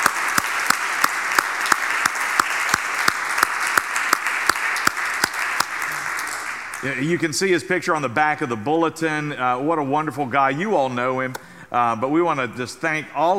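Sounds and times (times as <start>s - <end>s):
sharp loud claps: 0.0s - 7.1s
audience applause: 0.0s - 7.2s
speech: 6.8s - 13.3s.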